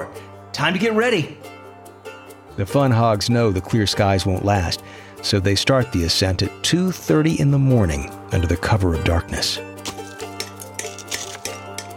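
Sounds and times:
speech: 0.0 - 1.5, 2.6 - 9.7
hammering steel pitons into rock: 9.8 - 11.9.

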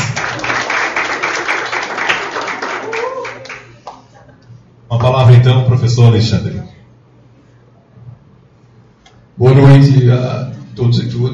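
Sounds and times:
audience applause: 0.0 - 4.1
speech: 5.4 - 6.7, 9.4 - 11.3.

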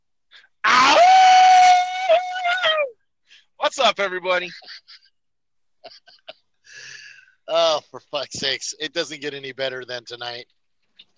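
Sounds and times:
imitated wolf howl: 0.6 - 2.9
speech: 3.8 - 4.9, 7.5 - 10.6
laughter: 4.4 - 5.1, 5.8 - 6.4.

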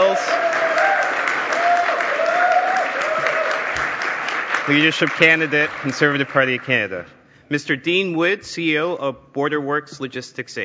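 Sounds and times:
audience applause: 0.0 - 6.9
speech: 4.7 - 10.6.

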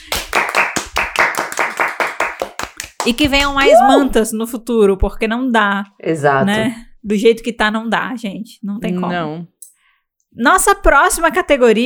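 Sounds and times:
audience clapping: 0.0 - 3.7
speech: 3.0 - 9.5, 10.4 - 11.8.

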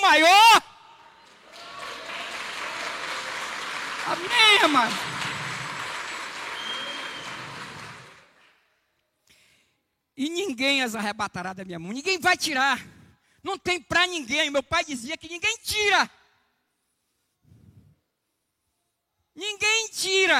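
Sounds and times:
audience applause: 1.1 - 8.5
speech: 4.6 - 5.2, 10.2 - 16.2, 19.4 - 20.3.

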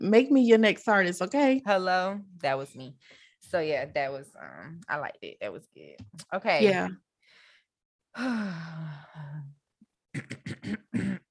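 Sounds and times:
speech: 0.0 - 7.1, 8.2 - 9.6, 10.2 - 11.2
throat clearing: 10.1 - 11.2.

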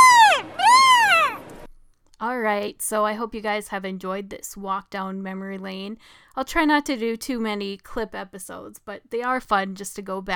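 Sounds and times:
person imitating a porg squawk: 0.0 - 1.5
speech: 2.5 - 10.3.

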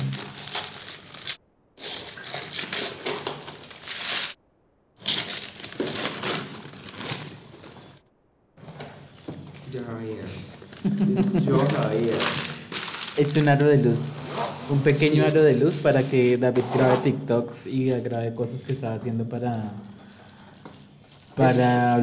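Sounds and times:
unwrapping a package: 0.0 - 4.4, 5.0 - 8.0, 11.6 - 14.0, 14.9 - 16.5, 19.5 - 22.0
speech: 9.7 - 12.5, 13.2 - 20.0, 21.4 - 22.0
laughter: 10.8 - 12.0.

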